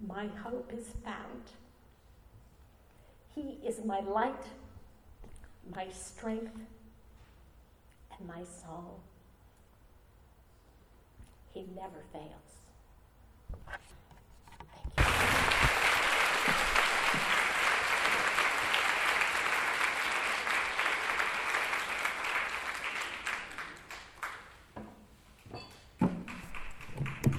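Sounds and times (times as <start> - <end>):
speech: 0.1 - 1.6, 3.4 - 4.7, 5.6 - 6.8, 8.2 - 9.1, 11.6 - 12.6
audience applause: 15.0 - 24.6, 26.2 - 27.3.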